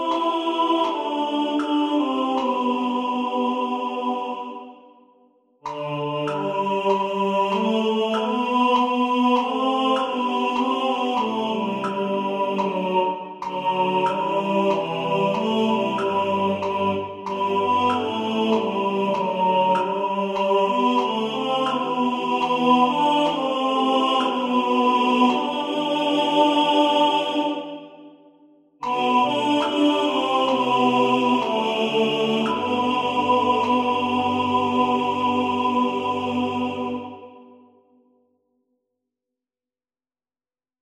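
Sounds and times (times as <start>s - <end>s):
tenor voice singing: 0.0s - 4.8s, 5.6s - 28.1s, 28.8s - 37.6s
metronome ticking: 5.6s - 25.6s, 28.8s - 34.6s.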